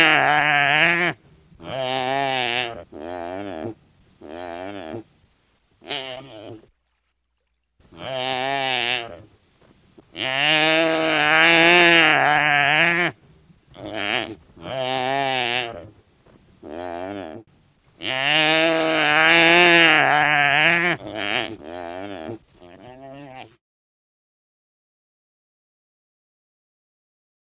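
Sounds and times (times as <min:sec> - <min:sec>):
antelope bleating: 0:00.0 - 0:05.1, 0:05.8 - 0:06.7, 0:07.9 - 0:09.3, 0:10.1 - 0:15.9, 0:16.6 - 0:17.4, 0:18.0 - 0:23.6.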